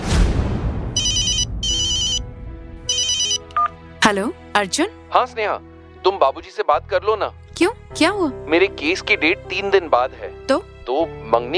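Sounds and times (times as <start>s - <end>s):
phone ringtone ringing: 1.0s - 2.3s, 2.9s - 3.7s
speech: 4.1s - 11.5s.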